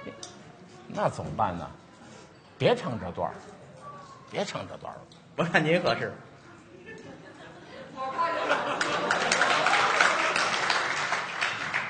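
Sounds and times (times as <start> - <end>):
faint crowd murmur: 0.0 - 9.2
speech: 0.1 - 1.8, 2.6 - 3.6, 4.3 - 6.3
laughter: 6.7 - 10.4
audience applause: 8.6 - 11.8.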